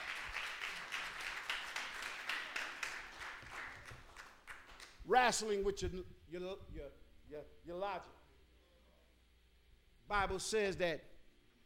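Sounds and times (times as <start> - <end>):
audience hand clapping: 0.0 - 5.0
speech: 5.1 - 8.2, 10.1 - 11.1.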